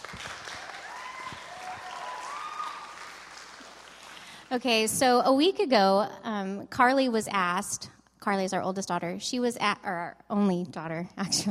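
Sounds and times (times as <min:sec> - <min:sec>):
audience applause: 0:00.0 - 0:04.5
whistles and cheers: 0:00.5 - 0:03.5
speech: 0:04.5 - 0:11.4.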